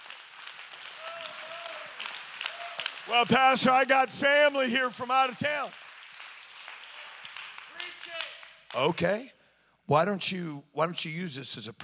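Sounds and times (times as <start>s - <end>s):
audience clapping hands: 0.0s - 9.2s
speech: 3.1s - 5.8s, 8.7s - 11.8s.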